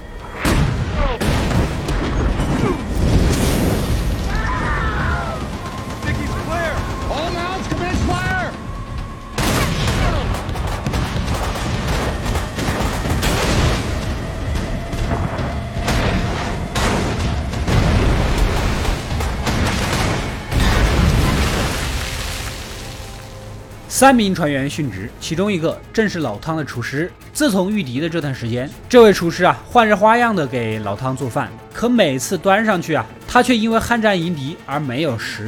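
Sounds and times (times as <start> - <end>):
low rumbling roar: 0.0 - 23.9
naval artillery gunfire and explosions: 0.0 - 26.9
people shouting: 4.2 - 8.7, 9.5 - 10.8
speech: 24.0 - 35.4.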